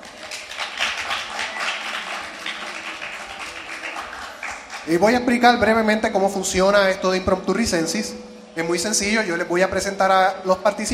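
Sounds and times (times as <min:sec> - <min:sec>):
audience applause: 0:00.0 - 0:04.9
speech: 0:04.9 - 0:10.9.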